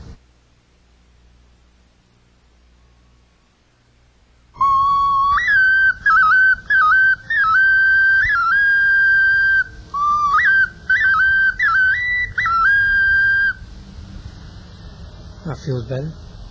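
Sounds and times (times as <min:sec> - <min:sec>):
Indian snake pipe shaped like a cobra's head being played: 0:04.5 - 0:13.8
speech: 0:15.7 - 0:16.4.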